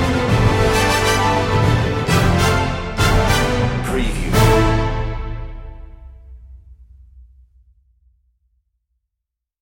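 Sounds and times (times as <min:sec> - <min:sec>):
music without choir: 0:00.0 - 0:06.5.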